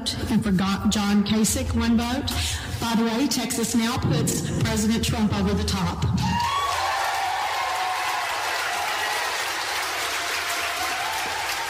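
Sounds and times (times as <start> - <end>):
speech: 0.1 - 6.3
standing applause: 6.4 - 11.6.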